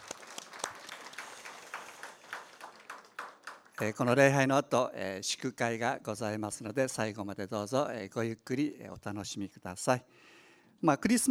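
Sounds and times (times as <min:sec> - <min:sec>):
audience welcome applause: 0:00.0 - 0:04.0
speech: 0:03.8 - 0:11.2.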